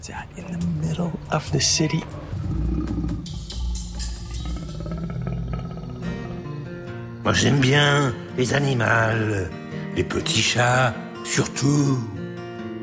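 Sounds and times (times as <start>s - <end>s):
speech: 0.0s - 2.2s, 7.3s - 12.2s
wild leopard growling in a city centre: 2.2s - 7.2s.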